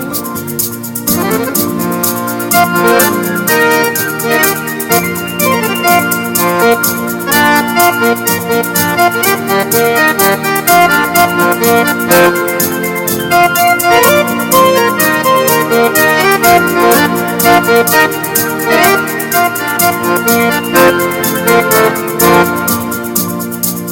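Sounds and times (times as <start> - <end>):
pretty sounds: 0.0 - 23.9.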